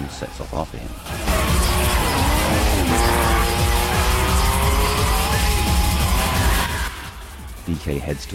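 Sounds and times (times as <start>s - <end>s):
speech: 0.1s - 3.3s, 7.7s - 8.3s
Nissan 350Z engine roaring: 0.9s - 7.6s
tires squealing and skidding: 1.0s - 7.2s.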